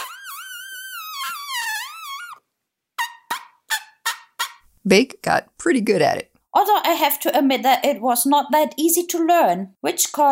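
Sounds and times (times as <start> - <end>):
elephant lip buzzing vocalization: 0.0 - 2.4
speech: 4.8 - 10.3.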